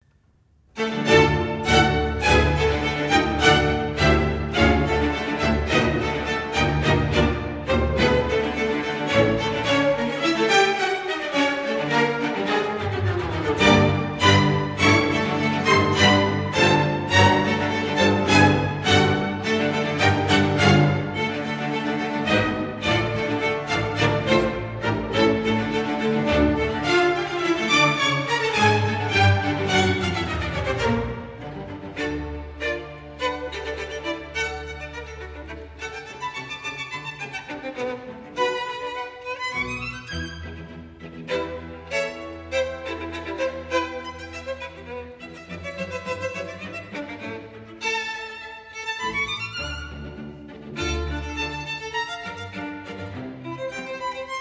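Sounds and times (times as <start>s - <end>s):
classical bourree variations: 0.0s - 54.4s.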